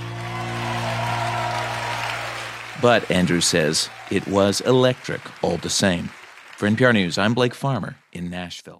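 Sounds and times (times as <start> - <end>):
sparse audience applause on hard pews: 0.0 - 8.3
speech: 2.8 - 8.7.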